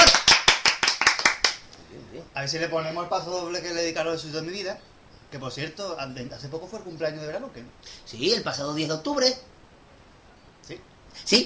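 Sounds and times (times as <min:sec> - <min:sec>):
applause: 0:00.0 - 0:01.7
speech: 0:02.4 - 0:09.5, 0:10.7 - 0:11.4.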